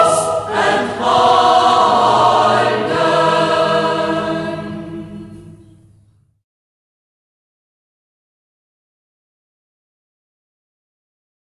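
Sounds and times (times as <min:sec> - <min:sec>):
chamber choir in Schäßburg local dialect: 0:00.0 - 0:06.0.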